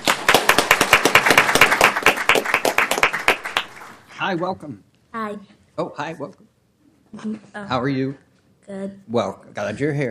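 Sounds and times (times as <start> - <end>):
audience applause: 0.0 - 4.0
speech: 4.3 - 10.0.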